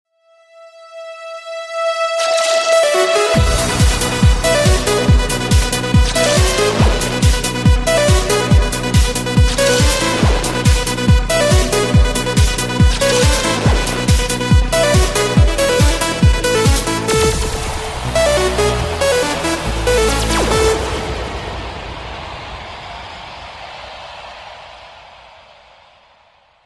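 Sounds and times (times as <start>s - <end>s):
ringtone fast dance mix: 2.2s - 21.0s.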